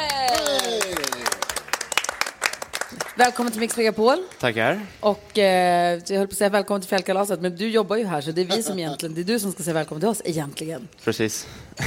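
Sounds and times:
audience applause: 0.0s - 3.7s
speech: 3.2s - 11.8s.

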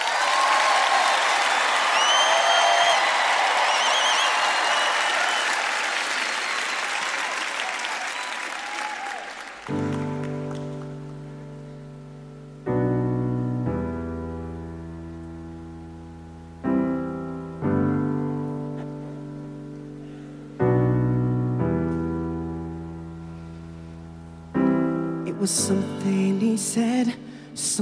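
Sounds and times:
cheers and whistles: 0.0s - 9.7s
audience applause after a performance introduction: 0.0s - 11.3s
sustained piano chords: 9.6s - 27.8s
speech: 25.4s - 27.8s.

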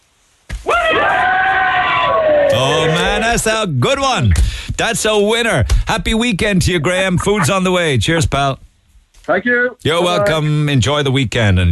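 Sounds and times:
group of people giving a big cheer: 0.6s - 3.2s
speech: 3.4s - 8.7s, 9.3s - 11.7s.

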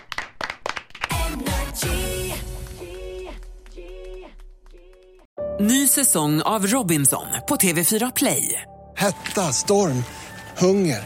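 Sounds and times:
applause from studio hosts: 0.0s - 1.6s, 2.6s - 5.3s
speech: 1.4s - 2.0s, 5.6s - 11.0s.

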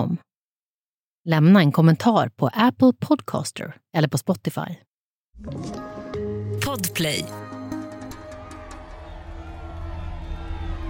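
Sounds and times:
speech: 1.2s - 5.8s, 6.8s - 7.4s
large crowd cheering and roaring: 7.6s - 10.8s.

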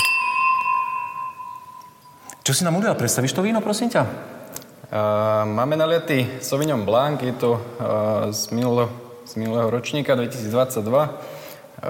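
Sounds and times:
wine glasses clinking in a toast: 0.0s - 2.3s
speech: 2.4s - 11.8s.

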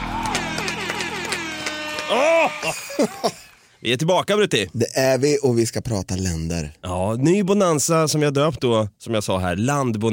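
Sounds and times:
loud tonal horn blaring in repeated sliding honks: 0.0s - 3.0s
crowd applause and cheering: 0.0s - 3.6s
laughter: 0.0s - 3.6s
speech: 2.1s - 10.1s.

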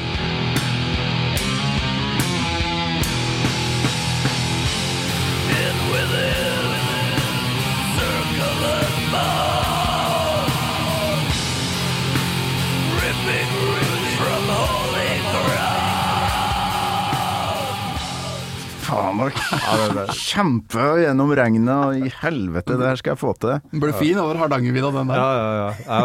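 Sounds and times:
hard aggressive music track: 0.0s - 20.1s
shouted yelling vocals: 5.4s - 11.5s, 12.8s - 18.7s
laughter: 19.1s - 20.4s, 25.0s - 26.0s
speech: 19.6s - 26.0s.

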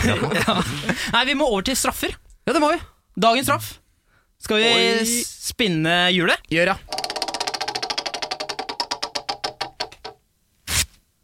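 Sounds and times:
laughter: 0.0s - 1.1s
speech: 0.0s - 3.8s, 4.4s - 7.0s
sheet of toilet paper tearing: 10.6s - 11.0s.

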